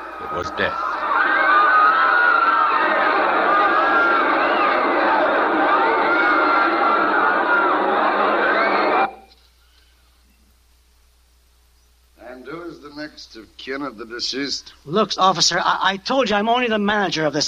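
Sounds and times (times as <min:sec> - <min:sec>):
huge crowd roaring and screaming in terror: 0:00.0 - 0:09.2
speech: 0:00.3 - 0:00.9, 0:13.3 - 0:17.4.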